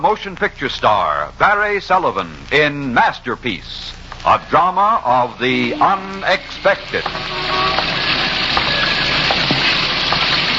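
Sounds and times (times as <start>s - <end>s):
speech: 0.0s - 8.0s
rain spattering: 0.0s - 10.5s
rain gushing from gutters: 2.5s - 10.5s.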